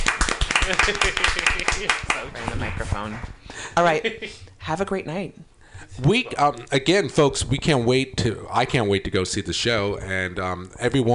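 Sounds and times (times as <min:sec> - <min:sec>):
crowd applause: 0:00.0 - 0:02.3
speech: 0:00.7 - 0:11.1.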